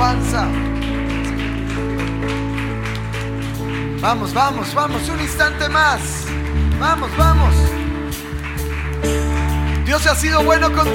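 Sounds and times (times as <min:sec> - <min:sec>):
audience applause: 0:00.0 - 0:10.9
sustained keyboard chords: 0:00.0 - 0:10.9
speech: 0:04.0 - 0:07.8, 0:09.0 - 0:09.3, 0:09.9 - 0:10.9.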